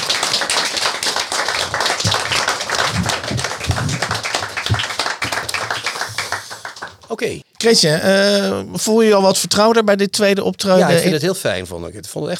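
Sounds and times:
audience applause: 0.0 - 7.1
speech: 7.2 - 12.3.

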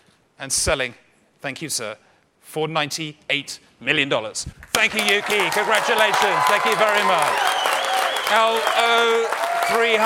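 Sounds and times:
speech: 0.4 - 10.0
auction room applause: 4.6 - 10.0
auction room crowd cheering wildly: 4.8 - 10.0.

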